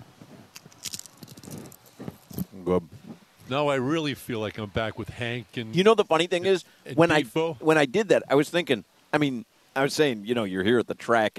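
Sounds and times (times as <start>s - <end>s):
chip being bitten and chewed: 0.5s - 2.4s
speech: 2.7s - 11.3s.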